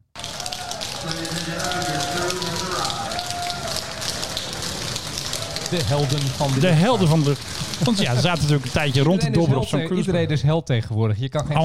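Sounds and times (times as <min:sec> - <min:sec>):
passengers cheering and clapping for arriving flight crew: 0:00.0 - 0:09.4
whoops and raised voices: 0:00.2 - 0:07.1
speech: 0:05.7 - 0:11.6.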